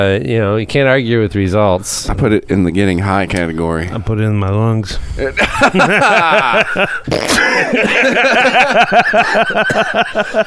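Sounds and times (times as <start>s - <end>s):
speech: 0.0s - 10.4s
laughter: 5.3s - 10.4s
person coughing: 7.0s - 8.2s, 9.6s - 10.4s.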